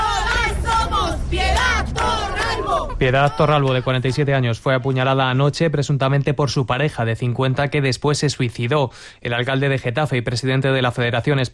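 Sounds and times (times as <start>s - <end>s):
protest crowd shouting: 0.0s - 4.4s
speech: 3.0s - 11.5s.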